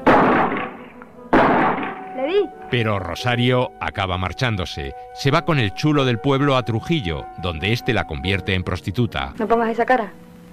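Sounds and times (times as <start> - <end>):
shoulder-fired gun going off: 0.0 - 2.2
speech: 2.2 - 10.2.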